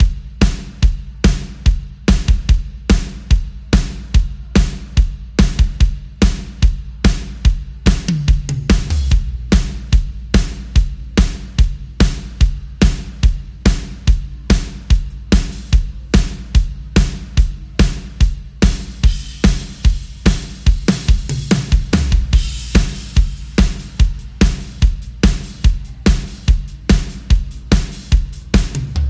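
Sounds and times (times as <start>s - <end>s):
drums: 0.0s - 29.0s.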